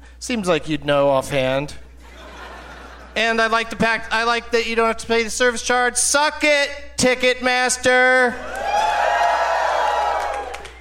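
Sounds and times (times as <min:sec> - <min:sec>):
speech: 0:00.2 - 0:01.8, 0:03.2 - 0:08.6
laughter: 0:01.9 - 0:03.7
audience applause: 0:08.4 - 0:10.7.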